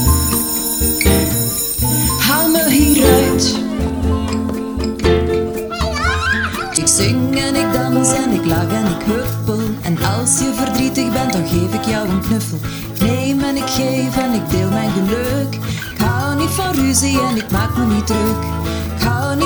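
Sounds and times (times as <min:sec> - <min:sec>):
school bell ringing: 0:00.0 - 0:06.9
bouncy children's song with full instrumentation and young voices: 0:00.0 - 0:19.4
speech: 0:11.3 - 0:19.4.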